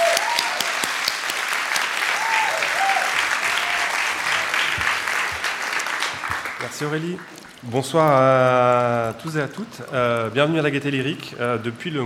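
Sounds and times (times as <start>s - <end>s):
voices and whoops: 0.0s - 0.8s, 2.1s - 4.6s
audience applause: 0.0s - 8.9s
speech: 6.8s - 12.0s.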